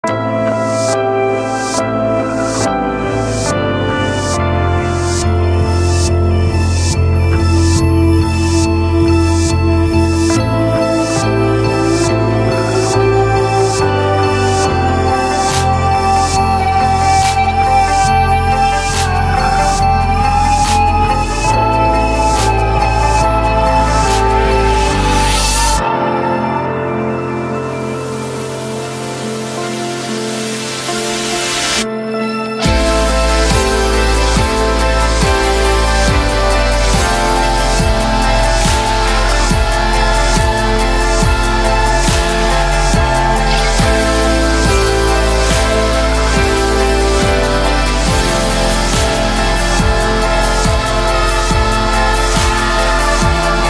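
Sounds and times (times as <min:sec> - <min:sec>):
music: 0:00.0 - 0:53.6.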